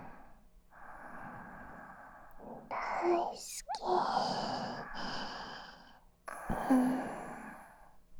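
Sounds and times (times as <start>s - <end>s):
sleeping breath: 0.8s - 7.4s.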